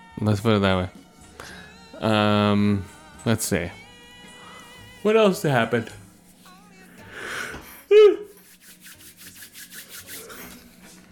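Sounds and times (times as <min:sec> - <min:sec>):
speech: 0:00.2 - 0:03.8, 0:05.0 - 0:06.0
person yawning: 0:07.1 - 0:08.4
rhythmic rubbing or scraping strokes: 0:08.3 - 0:11.0.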